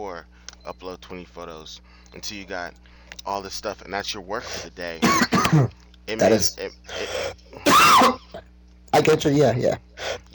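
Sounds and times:
speech: 0:00.1 - 0:08.3, 0:08.9 - 0:10.3
sneeze: 0:05.0 - 0:05.7, 0:07.6 - 0:08.4.

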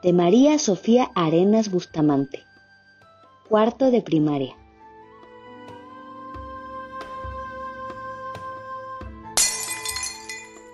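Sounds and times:
speech: 0:00.0 - 0:02.5, 0:03.5 - 0:04.6
glass breaking: 0:09.4 - 0:10.7.

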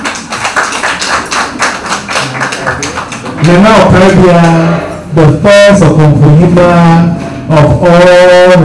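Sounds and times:
audience clapping: 0:00.0 - 0:04.6
speech: 0:03.4 - 0:08.6.

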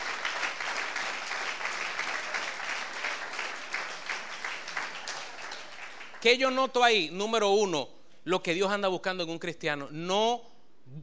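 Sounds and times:
church congregation applauding the Lord during a service: 0:00.0 - 0:06.7
speech: 0:06.2 - 0:11.0.

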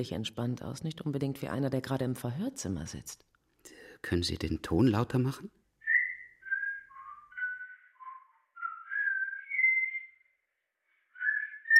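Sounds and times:
speech: 0:00.0 - 0:05.6
man whistling a little tune: 0:05.8 - 0:10.2, 0:11.2 - 0:11.7.

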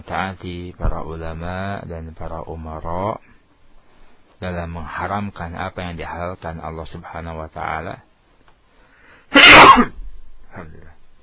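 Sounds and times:
speech: 0:00.1 - 0:03.4, 0:04.4 - 0:08.1, 0:09.4 - 0:11.0
sneeze: 0:09.3 - 0:10.0.

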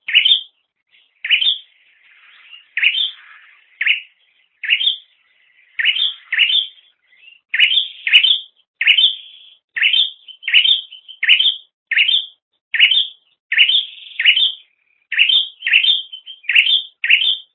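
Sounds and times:
bird chirping: 0:00.0 - 0:17.5.

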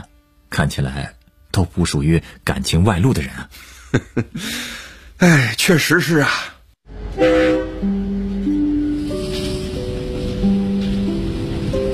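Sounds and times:
speech: 0:00.6 - 0:06.5
low rumbling train engine: 0:06.9 - 0:11.9
train horn blaring: 0:06.9 - 0:11.9.

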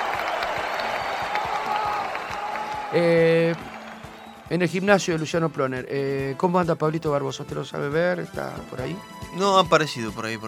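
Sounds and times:
audience applauding: 0:00.0 - 0:05.8
speech: 0:02.9 - 0:03.7, 0:04.5 - 0:10.4.

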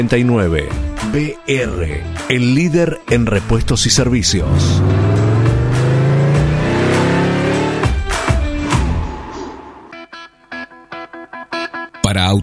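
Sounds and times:
speech: 0:00.0 - 0:05.0, 0:12.1 - 0:12.4
loud car engine starting and revving: 0:04.3 - 0:09.9.

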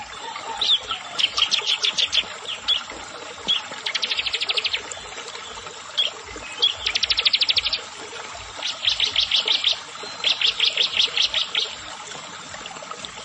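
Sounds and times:
Bar-winged prinia song: 0:00.0 - 0:12.0.

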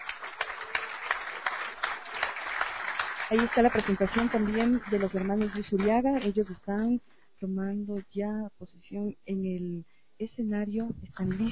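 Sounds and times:
audience applause: 0:00.0 - 0:06.3, 0:11.3 - 0:11.4
speech: 0:03.3 - 0:11.4.

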